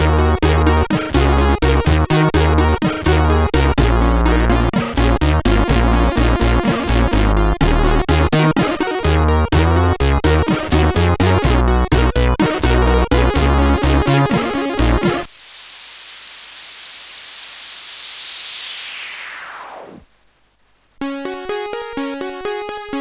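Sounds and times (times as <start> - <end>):
SID 8580R5 chip music: 0.0 - 15.3, 21.0 - 22.9.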